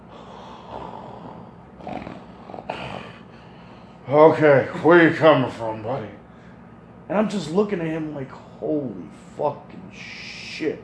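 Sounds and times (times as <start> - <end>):
person imitating heavy Darth Vader-like breathing: 0.0 - 4.0
speech: 4.1 - 6.2, 7.1 - 10.8.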